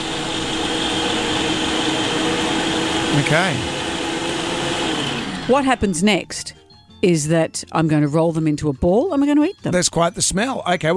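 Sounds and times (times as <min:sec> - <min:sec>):
food processor blitzing chickpea cookie dough: 0:00.0 - 0:06.2
speech: 0:03.2 - 0:03.8, 0:05.5 - 0:10.9.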